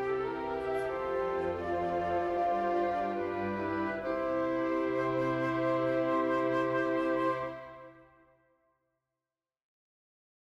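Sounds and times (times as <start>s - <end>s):
wind and string ensemble: 0.0s - 8.2s.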